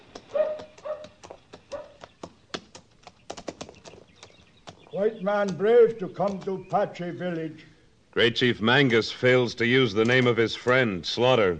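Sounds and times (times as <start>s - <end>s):
hoofbeats from a horse ridden by an Apache chief: 0.0s - 7.4s
speech: 4.9s - 11.5s.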